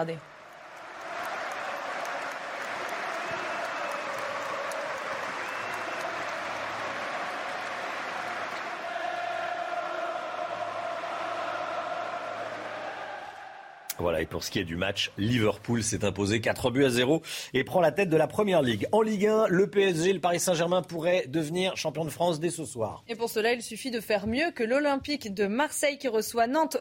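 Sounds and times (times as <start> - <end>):
speech: 0.0 - 0.3, 14.0 - 26.8
football stadium crowd applauding: 0.0 - 14.4.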